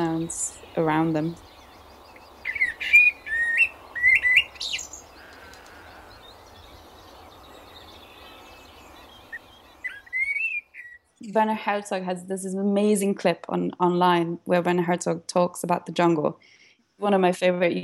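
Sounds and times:
London birds singing, mimicking phone sounds: 0.0 - 11.3
speech: 0.2 - 1.5, 11.2 - 17.8.

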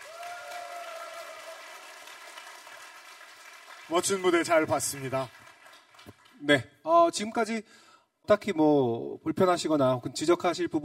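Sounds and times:
audience applause: 0.0 - 6.4
speech: 3.9 - 5.4, 6.4 - 10.8.

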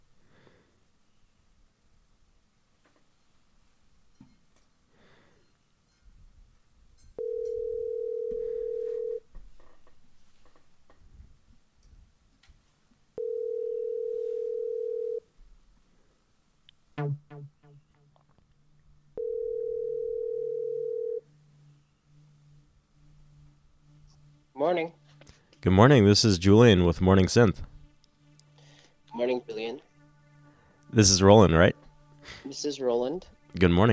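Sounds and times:
faint noise: 0.0 - 33.9
telephone line tone beeps while connecting to a caller: 7.2 - 9.2, 13.2 - 15.2, 19.2 - 21.2
speech: 25.6 - 27.7, 31.0 - 31.7, 32.6 - 33.9.

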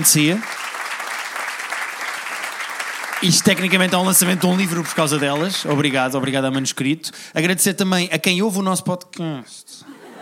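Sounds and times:
speech: 0.0 - 0.6, 3.2 - 9.9
audience applause: 0.0 - 6.7
laughter: 9.8 - 10.1.

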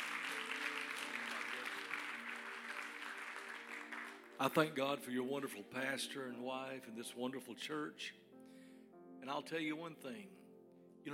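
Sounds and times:
church congregation applauding to welcome a visiting pastor: 0.0 - 4.8
speech: 4.4 - 8.2, 9.2 - 10.4.

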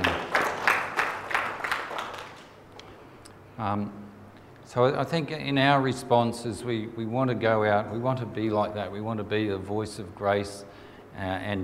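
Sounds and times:
audience applause: 0.0 - 2.6
speech: 3.6 - 4.1, 4.7 - 11.6.

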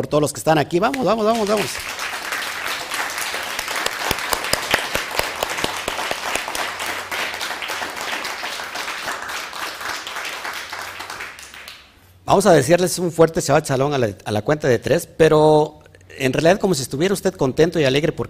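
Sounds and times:
speech: 0.0 - 2.0, 12.3 - 18.2
audience applause: 1.3 - 11.9.

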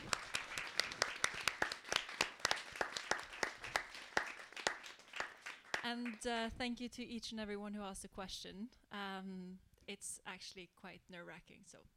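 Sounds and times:
audience applause: 0.0 - 6.2
speech: 5.9 - 11.9.

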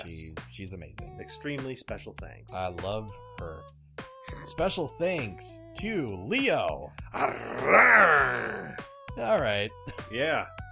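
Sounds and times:
speech: 0.0 - 3.8, 4.4 - 10.6
person imitating a lion's growl: 7.2 - 8.8.

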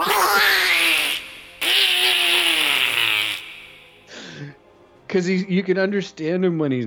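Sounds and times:
person imitating an angry cartoon duck: 0.0 - 3.9
speech: 5.1 - 6.8.

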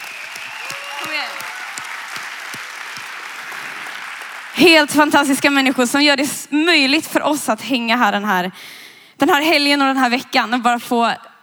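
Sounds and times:
audience applause: 0.0 - 5.1
speech: 4.6 - 11.3.

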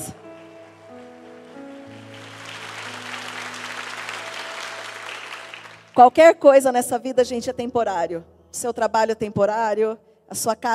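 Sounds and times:
sustained low keyboard chords: 0.0 - 6.0
audience applauding: 0.2 - 6.0
speech: 6.0 - 10.7.

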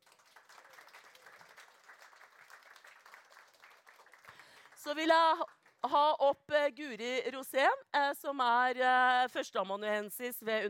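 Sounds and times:
audience applause: 0.0 - 4.9
speech: 4.8 - 10.6.

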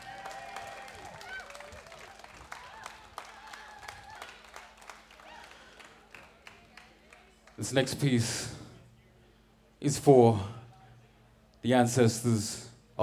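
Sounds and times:
scattered cheers: 0.0 - 5.9
crowd applauding: 0.0 - 7.6
voices in the room: 4.9 - 13.0
speech: 7.6 - 8.6, 9.8 - 10.6, 11.6 - 13.0.

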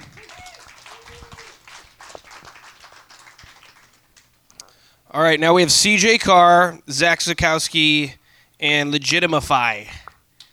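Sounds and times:
audience applause: 0.0 - 4.4
speech: 5.1 - 10.0.

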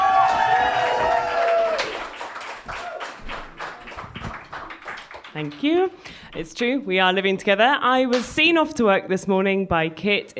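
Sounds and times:
audience cheering and whooping: 0.0 - 4.3
audience applause: 0.0 - 5.7
speech: 5.4 - 10.3.

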